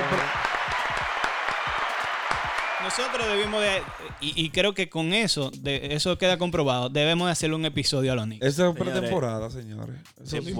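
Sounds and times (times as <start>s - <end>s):
applause: 0.0s - 4.4s
speech: 2.8s - 10.5s.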